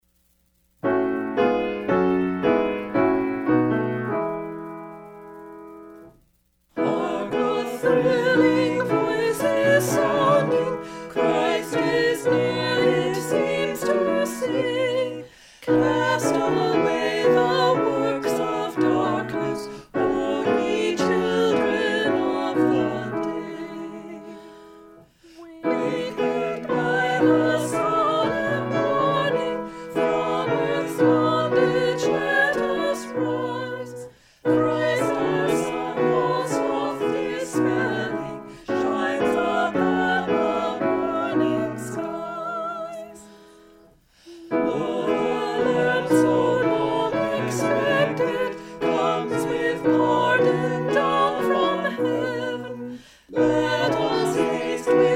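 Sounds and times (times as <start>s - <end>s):
piano: 0.1s - 55.1s
SATB choir singing a hymn: 6.8s - 55.1s.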